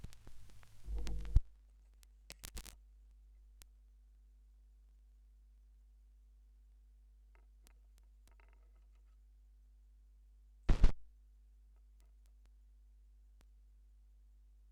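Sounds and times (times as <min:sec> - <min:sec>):
vinyl record crackle: 0:00.0 - 0:02.8, 0:10.7 - 0:11.0.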